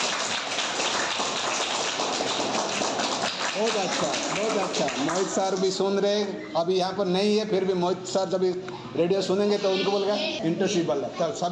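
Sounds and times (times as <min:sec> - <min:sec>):
children clapping: 0:00.0 - 0:05.8
speech: 0:03.6 - 0:11.5.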